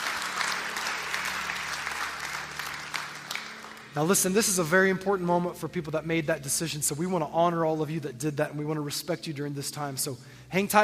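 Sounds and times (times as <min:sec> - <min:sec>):
church congregation applauding to welcome new members during a morning service: 0:00.0 - 0:04.9
speech: 0:04.0 - 0:10.8.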